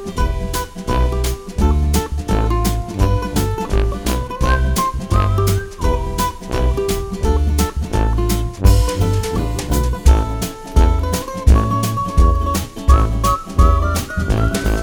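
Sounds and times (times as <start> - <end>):
string instrument picking: 0.0 - 14.8
person whistling: 4.4 - 6.7, 11.5 - 14.8.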